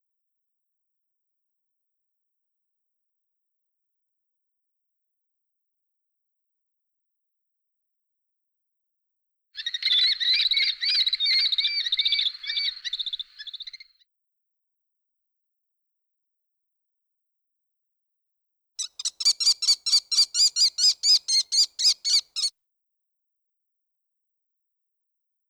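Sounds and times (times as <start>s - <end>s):
Hollywood bird calls: 9.6s - 13.9s, 18.8s - 22.5s.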